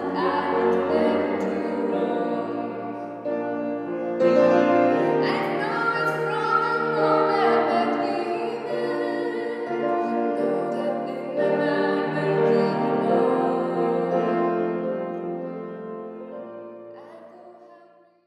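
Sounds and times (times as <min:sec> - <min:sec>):
person singing: 0:00.0 - 0:03.5, 0:04.2 - 0:14.6
piano: 0:00.0 - 0:17.9.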